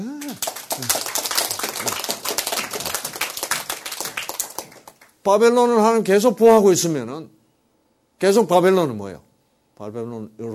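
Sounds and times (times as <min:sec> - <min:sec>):
applause: 0:00.0 - 0:05.2
speech: 0:05.2 - 0:07.4, 0:08.2 - 0:09.2, 0:09.8 - 0:10.5.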